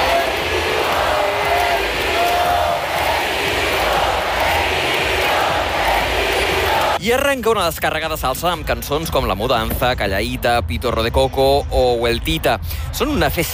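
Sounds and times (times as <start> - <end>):
concert crowd screaming and cheering: 0.0 - 7.0
speech: 7.1 - 13.5.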